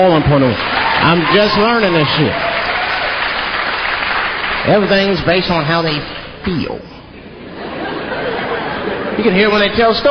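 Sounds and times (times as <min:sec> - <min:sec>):
speech: 0:00.0 - 0:02.5, 0:04.7 - 0:07.0, 0:09.2 - 0:10.0
audience clapping: 0:00.0 - 0:06.3
laughter: 0:07.1 - 0:10.0.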